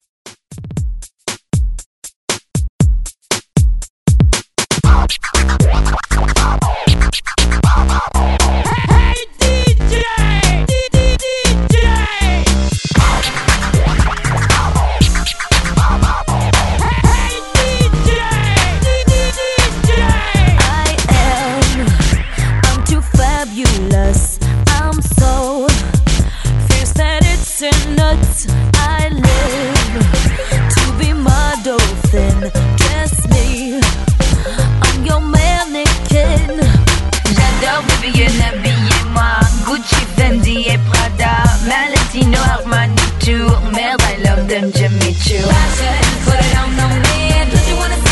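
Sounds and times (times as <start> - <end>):
hype drum beat with record scratching at 118 BPM: 0.3 - 48.0.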